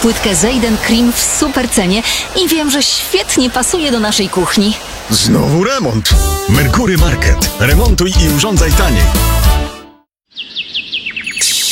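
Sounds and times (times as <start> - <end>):
speech: 0.0 - 9.7
bird singing in a summer garden: 10.2 - 11.7.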